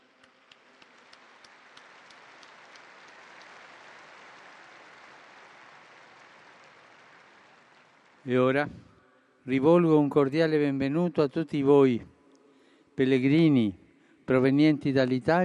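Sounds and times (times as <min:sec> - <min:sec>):
audience applause: 0:00.0 - 0:08.3
speech: 0:08.2 - 0:08.9, 0:09.5 - 0:12.1, 0:13.0 - 0:15.4.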